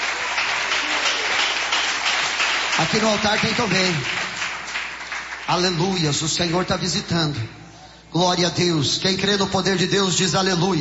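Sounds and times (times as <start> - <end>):
church congregation clapping in praise of Jesus: 0.0 - 6.9
speech: 2.8 - 4.2, 5.5 - 10.7.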